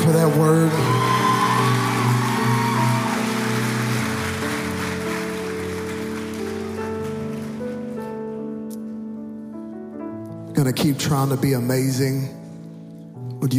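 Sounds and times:
audience applause: 0.0 - 8.0
speech: 0.2 - 1.2, 10.7 - 12.4.

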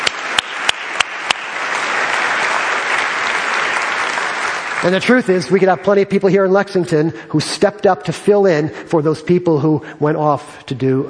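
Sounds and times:
audience clapping: 0.0 - 6.5
speech: 4.8 - 11.0.

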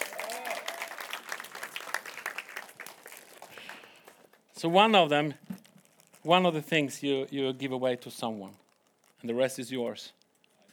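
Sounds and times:
crowd applauding: 0.0 - 4.5
speech: 4.6 - 5.4, 6.2 - 8.6, 9.2 - 10.2.

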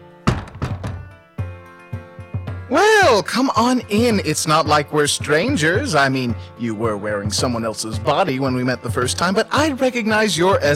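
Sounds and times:
door shut with a heavy wooden thunk: 0.2 - 1.2
low booming thuds: 0.2 - 1.5
speech: 2.7 - 10.7.

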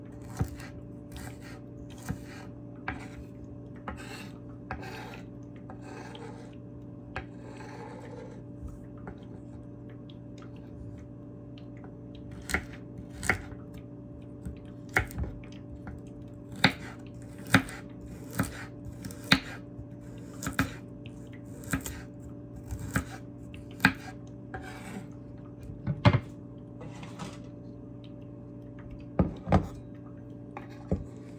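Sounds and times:
steady low hum: 0.0 - 17.3, 22.1 - 31.3
knife chopping a carrot on a board: 0.2 - 3.2, 12.3 - 13.5, 14.9 - 15.4, 16.5 - 19.6, 20.3 - 20.8, 21.6 - 22.0, 22.6 - 23.2, 23.8 - 25.0.

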